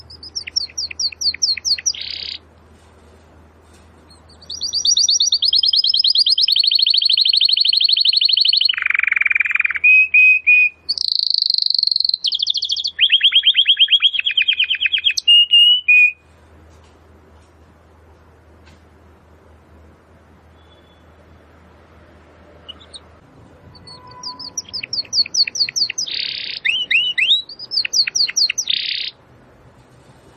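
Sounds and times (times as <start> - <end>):
domestic canary song: 0.0 - 2.5, 3.7 - 16.3, 20.4 - 21.6, 22.2 - 29.4.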